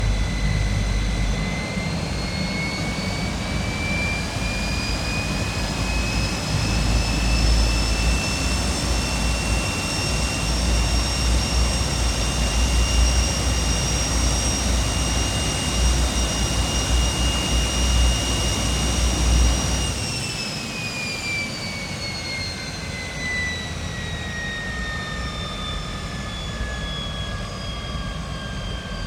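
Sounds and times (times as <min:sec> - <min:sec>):
MiG-15 UTI jet engine starting: 0:00.0 - 0:29.0.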